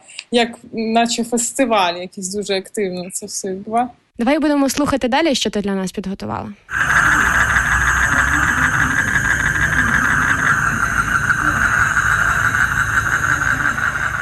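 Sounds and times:
speech: 0:00.3 - 0:06.9
evening chirping like large grasshoppers: 0:06.7 - 0:14.1.

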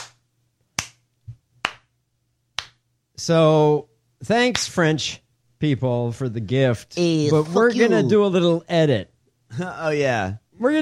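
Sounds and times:
slow clapping: 0:00.8 - 0:01.0, 0:02.6 - 0:02.8
speech: 0:03.2 - 0:10.8.

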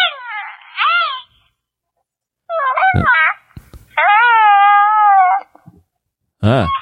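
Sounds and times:
Baby Yoda toy cooing: 0:00.0 - 0:01.4, 0:02.5 - 0:05.6, 0:06.4 - 0:06.7
speech: 0:03.0 - 0:03.2, 0:06.5 - 0:06.7.

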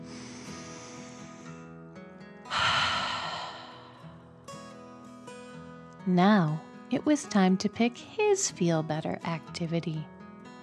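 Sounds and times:
deep breath in and out: 0:00.0 - 0:01.7, 0:02.5 - 0:04.2
speech: 0:06.0 - 0:10.2.

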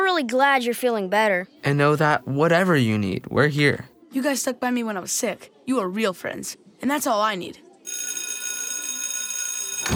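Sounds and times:
speech: 0:00.2 - 0:08.1
school bell ringing: 0:07.9 - 0:09.9.

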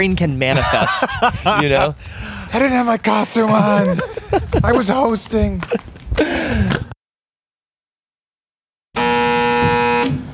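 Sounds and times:
speech: 0:00.0 - 0:06.7
laughter: 0:00.5 - 0:06.9
old school doorbell buzzing: 0:09.0 - 0:10.3.

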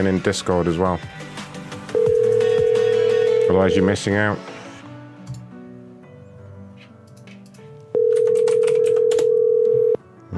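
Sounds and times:
speech: 0:00.0 - 0:01.4, 0:03.5 - 0:04.5
telephone ringback tone: 0:02.0 - 0:03.9, 0:08.0 - 0:10.0.

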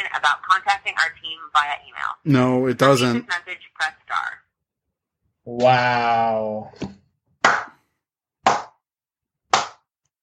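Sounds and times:
speech: 0:00.2 - 0:04.4, 0:05.5 - 0:07.7
slow hand clap: 0:09.5 - 0:09.9.

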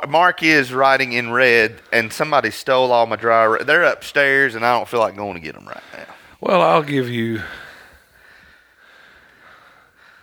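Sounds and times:
speech: 0:00.0 - 0:07.6
heavy breathing: 0:05.6 - 0:06.4, 0:07.2 - 0:10.2.

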